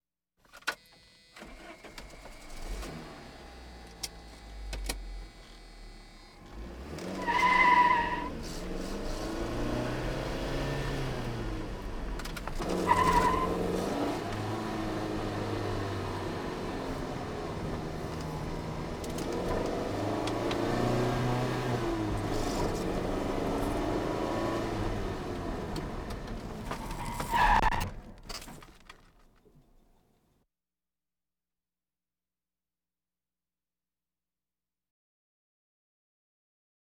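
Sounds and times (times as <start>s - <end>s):
various automobiles: 1.2s - 29.2s.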